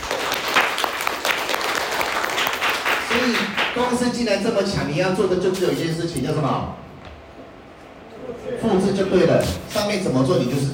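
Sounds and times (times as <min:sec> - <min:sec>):
audience applause: 0:00.0 - 0:03.8
speech: 0:03.1 - 0:06.8, 0:08.6 - 0:10.7.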